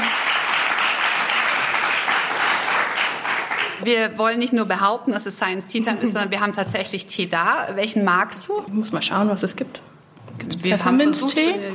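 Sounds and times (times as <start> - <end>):
live studio audience applause: 0.0 - 3.8
speech: 3.8 - 11.7.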